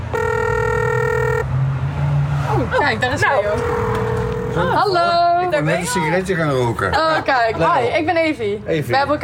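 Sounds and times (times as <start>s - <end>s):
electronic bell ringing: 0.1s - 1.5s, 3.4s - 5.5s
speech: 2.7s - 9.2s.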